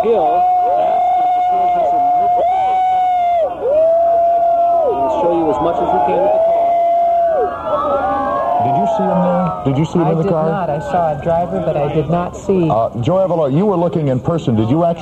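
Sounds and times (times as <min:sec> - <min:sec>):
speech: 0:00.0 - 0:00.6, 0:09.6 - 0:15.0
emergency siren wailing up and down: 0:00.0 - 0:11.0
crowd of people shouting and yelling over one another: 0:00.0 - 0:11.6.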